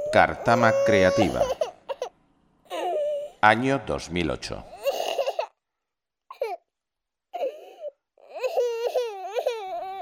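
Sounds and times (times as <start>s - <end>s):
baby crying: 0.0s - 2.1s, 2.7s - 3.4s, 4.7s - 5.6s, 6.3s - 6.7s, 7.3s - 9.9s
speech: 0.1s - 1.6s, 3.4s - 4.7s.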